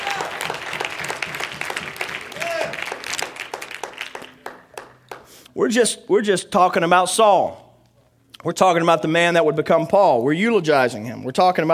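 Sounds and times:
audience clapping hands in praise: 0.0s - 5.4s
speech: 5.6s - 7.6s, 8.4s - 11.7s.

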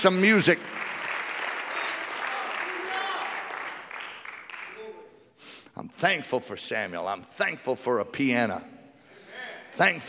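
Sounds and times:
speech: 0.0s - 0.8s, 5.8s - 8.8s, 9.8s - 10.0s
crowd clapping hands: 0.0s - 5.0s.

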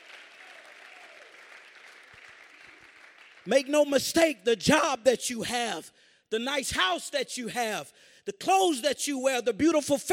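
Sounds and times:
audience clapping hands: 0.0s - 3.7s
speech: 3.4s - 10.1s.

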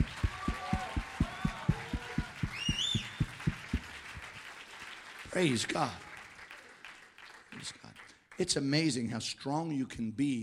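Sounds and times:
high whooping shouts: 0.0s - 3.2s
audience clapping hands: 0.0s - 8.7s
speech: 5.4s - 6.0s, 8.4s - 10.4s.

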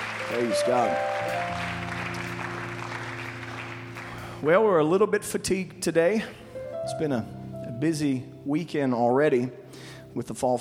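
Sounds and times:
church congregation clapping for visiting guests during a worship service: 0.0s - 4.6s
sustained droning chord: 0.0s - 4.7s
speech: 0.3s - 1.8s, 4.4s - 10.5s.

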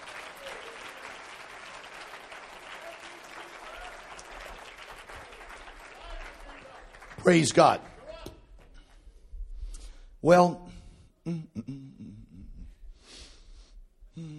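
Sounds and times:
audience clapping hands: 0.0s - 9.0s
speech: 7.2s - 7.9s, 10.2s - 10.6s.

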